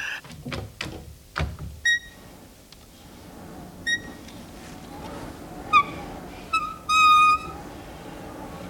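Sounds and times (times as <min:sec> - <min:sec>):
window frame knocks and rattles while being eased open: 0:00.2 - 0:01.9
window hinge creaking squeal: 0:01.8 - 0:02.4, 0:03.8 - 0:04.4, 0:05.6 - 0:07.7.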